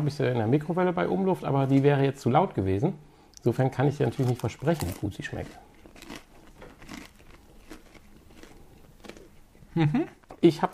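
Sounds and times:
speech: 0.0s - 5.7s, 9.8s - 10.7s
someone biting into a crispy pizza burger: 4.0s - 10.0s.

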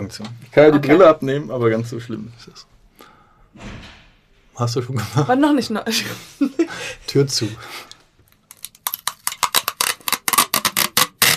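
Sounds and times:
speech: 0.1s - 2.8s, 3.6s - 4.0s, 4.6s - 7.9s
sticky tape unrolled from tape dispenser: 8.3s - 11.3s.

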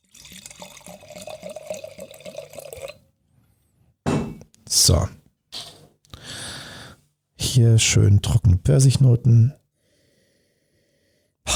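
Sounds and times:
wine pouring into a glass: 0.0s - 3.0s
bottle glugging: 0.1s - 3.0s
speech: 4.8s - 5.2s, 7.6s - 9.6s.

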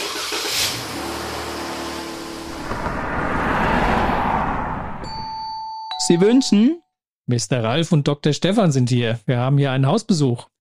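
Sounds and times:
car engine revving and driving up: 0.0s - 5.0s
speech: 6.1s - 10.5s.

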